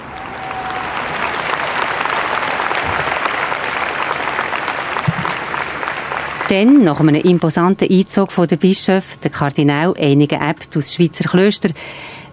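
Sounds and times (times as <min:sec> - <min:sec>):
crowd cheering and applauding: 0:00.0 - 0:06.8
speech: 0:06.5 - 0:12.3.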